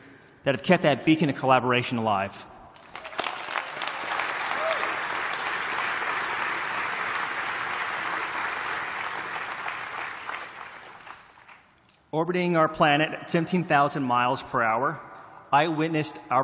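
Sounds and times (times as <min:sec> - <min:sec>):
speech: 0:00.4 - 0:02.5, 0:12.1 - 0:16.4
audience applause: 0:02.8 - 0:11.6.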